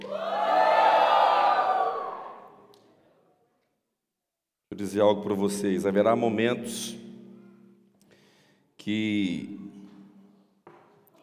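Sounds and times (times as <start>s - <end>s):
crowd shouting: 0.0s - 2.7s
speech: 4.8s - 7.0s, 8.8s - 9.7s.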